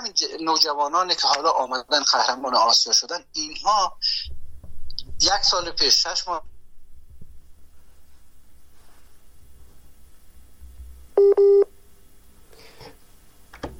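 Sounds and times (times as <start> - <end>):
faint low hum: 0.0 - 13.7
speech: 0.1 - 4.4, 5.2 - 6.5
telephone tone pulses as a phone call into a studio drops: 11.2 - 11.7.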